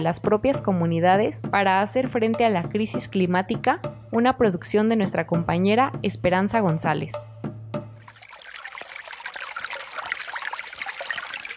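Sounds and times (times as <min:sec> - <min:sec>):
speech: 0:00.0 - 0:07.4
water trickling and dribbling: 0:08.0 - 0:11.5.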